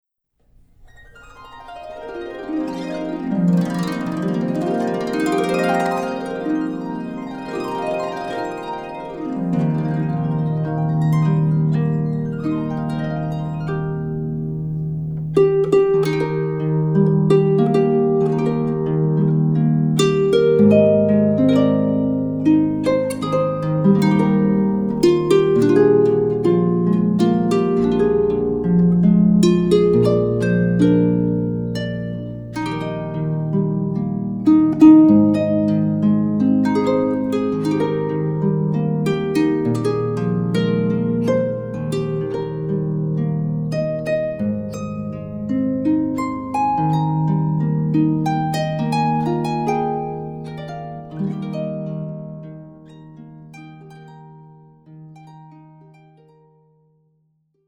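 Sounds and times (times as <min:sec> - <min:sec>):
harp piece: 0:00.5 - 0:56.8.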